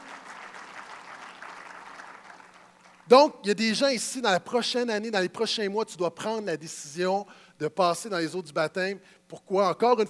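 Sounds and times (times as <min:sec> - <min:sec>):
audience applause: 0:00.0 - 0:03.0
speech: 0:03.1 - 0:10.0.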